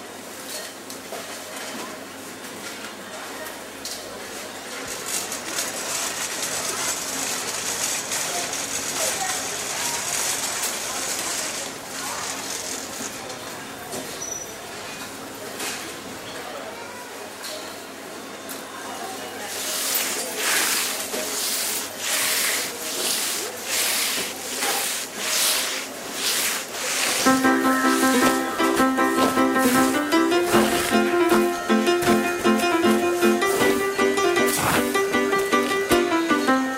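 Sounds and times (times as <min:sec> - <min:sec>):
shop background activity: 0:00.2 - 0:36.7
rubbing and scraping noises: 0:19.6 - 0:31.0.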